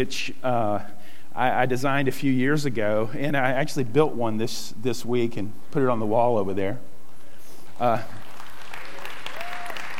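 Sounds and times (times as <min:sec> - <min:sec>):
speech: 0:00.0 - 0:06.9, 0:07.8 - 0:08.2
audience applause: 0:07.8 - 0:09.9.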